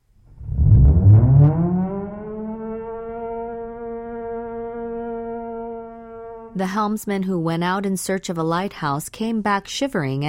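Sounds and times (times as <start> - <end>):
old ship's foghorn moaning in fog: 0.4 - 6.7
speech: 6.6 - 10.2.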